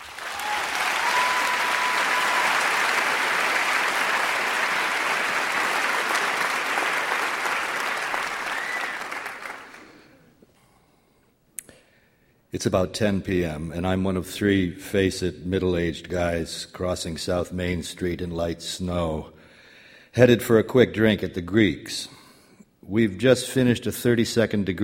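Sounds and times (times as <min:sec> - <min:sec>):
audience applause welcoming author Russell Banks: 0:00.0 - 0:10.0
speech: 0:12.6 - 0:19.3, 0:20.2 - 0:22.2, 0:22.9 - 0:24.8.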